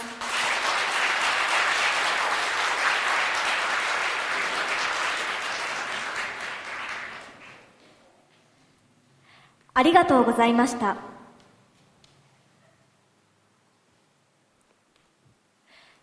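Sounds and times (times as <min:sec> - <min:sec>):
audience applause: 0:00.0 - 0:07.8
speech: 0:09.8 - 0:11.1.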